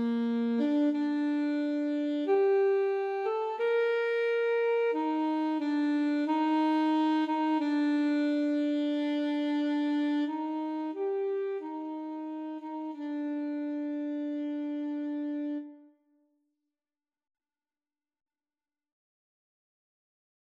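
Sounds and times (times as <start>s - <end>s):
largo flute and saxophone duet: 0.0s - 16.0s.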